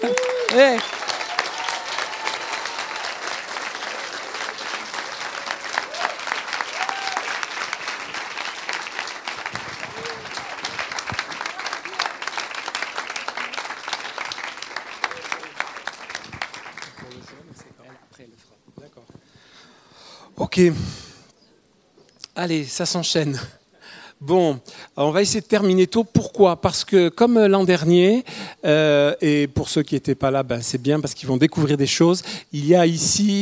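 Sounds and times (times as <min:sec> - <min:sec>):
audience applause: 0:00.0 - 0:18.0
speech: 0:00.5 - 0:00.9, 0:20.6 - 0:21.0, 0:22.4 - 0:23.6, 0:24.2 - 0:33.3.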